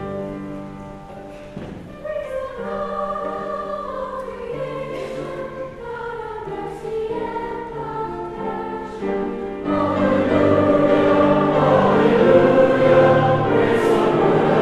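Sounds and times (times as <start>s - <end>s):
gospel acclamation singing: 1.9s - 14.5s.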